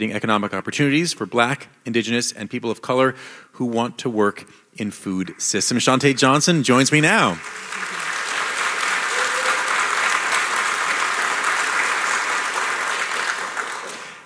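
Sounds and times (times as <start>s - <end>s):
speech: 0.0s - 8.0s
audience applause: 5.3s - 14.2s.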